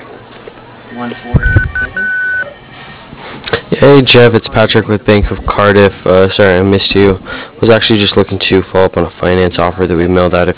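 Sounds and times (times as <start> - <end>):
speech: 0.9 - 2.2, 3.4 - 10.5
voicemail answering machine beeps: 1.4 - 2.6.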